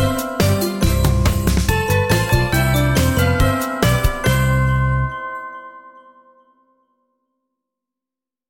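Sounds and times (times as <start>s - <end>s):
on-hold music: 0.0s - 6.8s.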